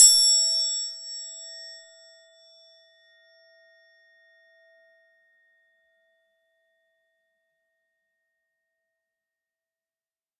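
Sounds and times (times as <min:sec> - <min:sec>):
temple bells: 0:00.0 - 0:02.3.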